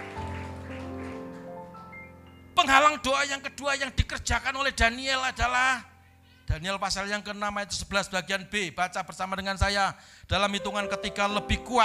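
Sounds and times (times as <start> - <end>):
crowd clapping: 0.0 - 2.0
sustained keyboard chords: 0.0 - 4.0, 10.6 - 11.8
speech: 2.6 - 5.9, 6.5 - 11.8.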